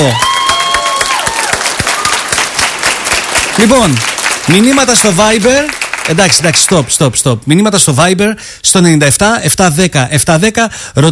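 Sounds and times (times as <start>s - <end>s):
speech: 0.0s - 0.3s, 3.6s - 11.1s
studio audience applause on a Greek game show: 0.0s - 7.0s.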